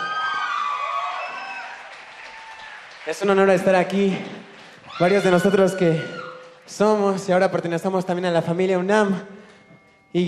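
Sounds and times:
whoops and shouts: 0.0 - 2.8, 4.8 - 6.6
crowd applauding: 0.0 - 7.8
speech: 3.1 - 9.4.

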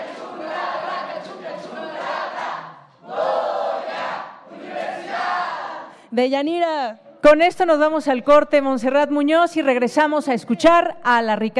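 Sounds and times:
crowd chanting a university cheer: 0.0 - 6.0
speech: 6.1 - 11.5.

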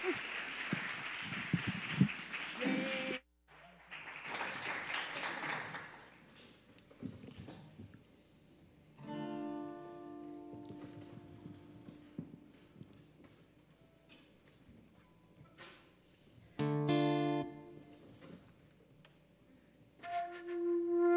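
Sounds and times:
audience applause: 0.0 - 6.6
music: 9.0 - 13.1, 16.6 - 18.4, 20.0 - 21.1.

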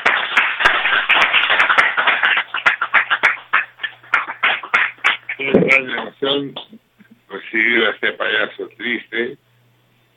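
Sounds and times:
audience applause: 0.0 - 5.4
speech: 6.2 - 6.8, 7.5 - 9.4.

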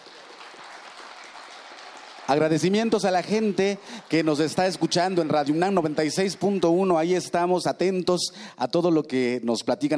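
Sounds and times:
audience applause: 0.0 - 6.9
speech: 2.3 - 9.9.

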